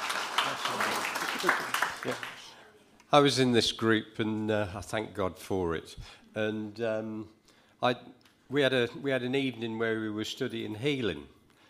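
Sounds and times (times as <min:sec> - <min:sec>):
church congregation applauding: 0:00.0 - 0:02.6
speech: 0:01.4 - 0:02.3, 0:03.1 - 0:11.4.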